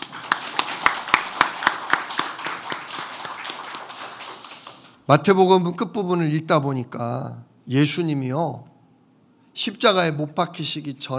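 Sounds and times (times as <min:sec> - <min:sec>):
audience clapping in a steady quick rhythm: 0:00.0 - 0:05.1
speech: 0:05.1 - 0:08.7, 0:09.6 - 0:11.1.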